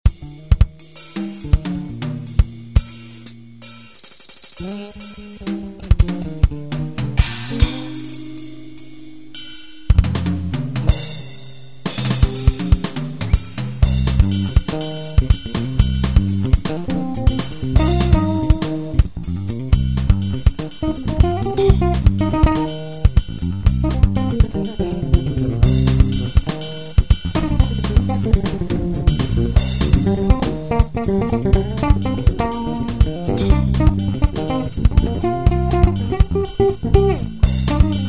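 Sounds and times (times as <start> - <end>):
muted bass: 0.1 - 3.7, 4.6 - 38.0.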